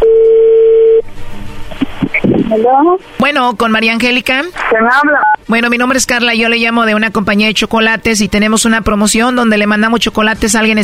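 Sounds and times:
telephone dial tone: 0.0 - 1.0
speech: 2.5 - 10.8.

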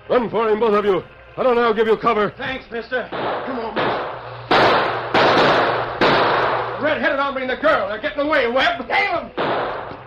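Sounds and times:
speech: 0.1 - 4.0, 6.8 - 9.9
gunshots: 3.1 - 7.1, 9.3 - 10.0.

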